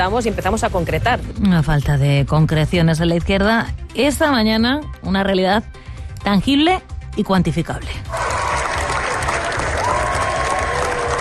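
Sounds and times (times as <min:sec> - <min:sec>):
speech: 0:00.0 - 0:08.2
sustained applause from a large crowd: 0:08.1 - 0:11.2.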